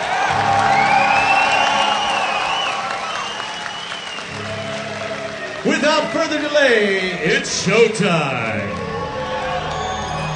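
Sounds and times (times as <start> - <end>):
festival crowd applause: 0.0 - 10.3
speech: 6.2 - 8.7.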